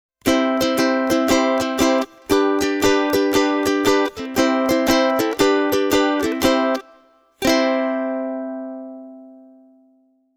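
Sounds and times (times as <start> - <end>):
concert ukuleles: 0.2 - 9.8.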